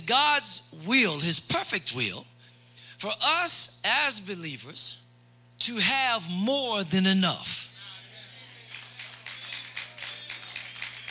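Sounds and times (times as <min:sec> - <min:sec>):
speech: 0:00.1 - 0:02.4, 0:03.0 - 0:05.0, 0:05.6 - 0:07.7
hand claps: 0:08.7 - 0:11.0.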